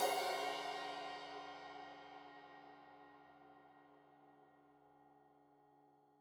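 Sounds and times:
15 inch crash cymbal edge hit: 0.0s - 2.4s.

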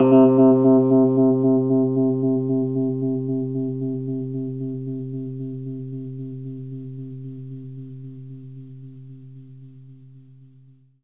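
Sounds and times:
fast Rhodes electric piano: 0.0s - 3.8s.

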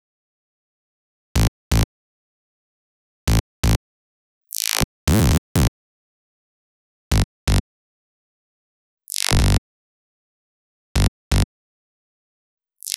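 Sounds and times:
afterhours EDM electro bass: 1.4s - 1.8s, 3.3s - 3.8s, 5.1s - 5.7s, 7.1s - 7.6s, 11.0s - 11.4s.

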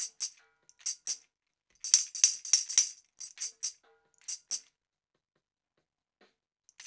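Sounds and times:
tambourine: 0.0s - 1.2s, 1.8s - 4.7s.

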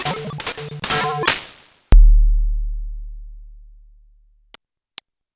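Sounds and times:
sliced samples from Noise Engineering Basimilus Iteritas synthesizer: 0.0s - 3.8s.

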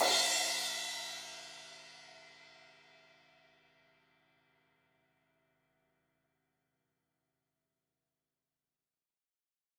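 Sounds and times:
16-inch crash cymbal hit on the edge: 0.0s - 2.2s.

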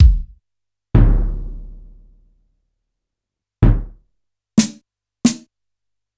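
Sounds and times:
Yamaha PSR-E323 keyboard symphony drum kit: 0.0s - 0.4s, 1.0s - 1.9s, 3.6s - 3.9s, 4.6s - 5.4s.

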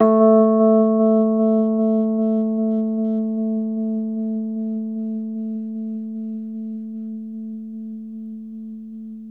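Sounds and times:
Rhodes electric piano note A2: 0.0s - 7.1s.

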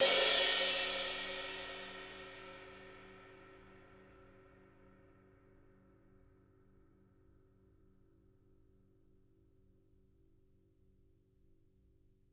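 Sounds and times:
ride cymbal: 0.0s - 2.8s
drums: 0.0s - 3.3s
crash cymbals: 0.0s - 3.6s.

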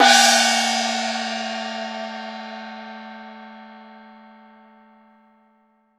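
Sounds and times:
DARUO OPN percussion kit: 0.0s - 2.7s.

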